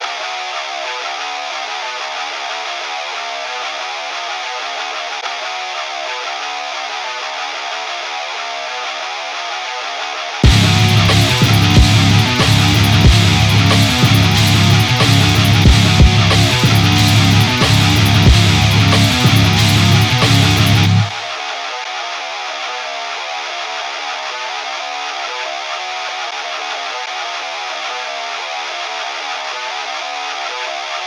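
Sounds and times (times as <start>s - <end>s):
musical riff: 10.4s - 21.2s.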